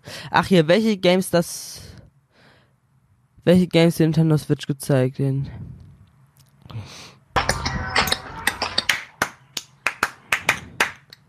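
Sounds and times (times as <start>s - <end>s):
speech: 0.2s - 1.8s, 3.4s - 5.8s, 6.7s - 7.1s
single person clapping hands: 7.5s - 11.2s.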